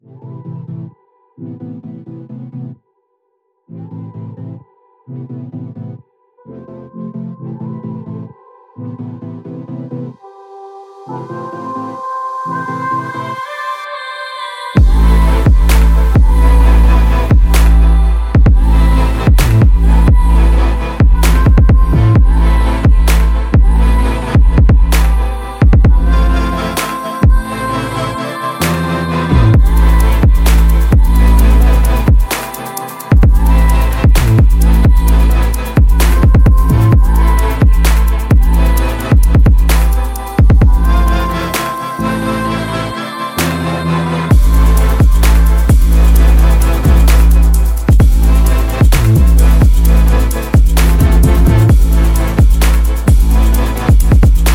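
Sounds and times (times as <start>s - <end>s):
future bass trap music: 14.8s - 54.5s.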